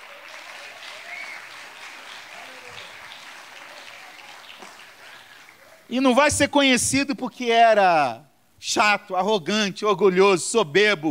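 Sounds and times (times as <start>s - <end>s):
audience applause: 0.0s - 5.9s
speech: 5.9s - 11.0s.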